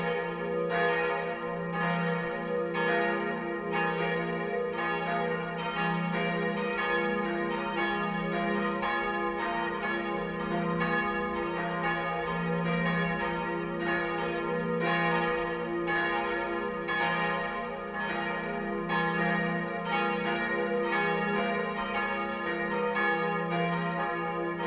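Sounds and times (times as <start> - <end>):
multi-voice bell peal of three bells: 0.0 - 17.4, 18.0 - 24.6.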